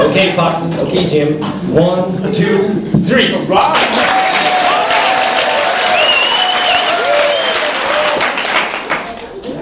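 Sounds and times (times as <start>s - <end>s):
speech: 0.1s - 4.1s
audience clapping on cue: 3.7s - 9.4s.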